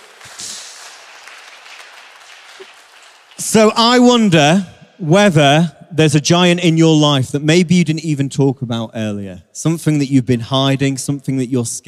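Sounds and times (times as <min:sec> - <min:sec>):
audience applause: 0:00.0 - 0:03.8
speech: 0:03.4 - 0:11.8.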